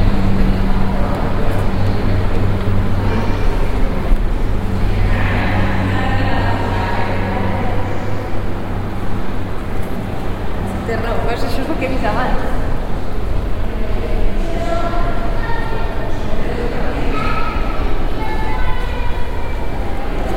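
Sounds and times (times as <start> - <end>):
hum and low rumble in Reina Sofía Museum spaces: 0.0 - 20.3
indistinct voices in Reina Sofía Museum: 0.0 - 20.3
low drone: 0.0 - 20.3.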